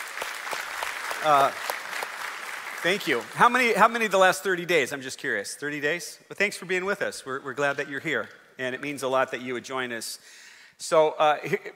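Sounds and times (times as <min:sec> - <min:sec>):
crowd applauding: 0:00.0 - 0:04.1
speech: 0:01.2 - 0:01.6, 0:02.8 - 0:11.7.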